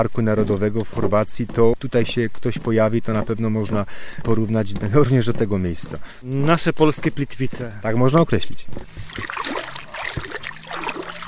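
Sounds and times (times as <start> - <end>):
speech: 0.0 - 9.5
lake water trickling from hands dipped from a wooden pier: 8.9 - 11.2.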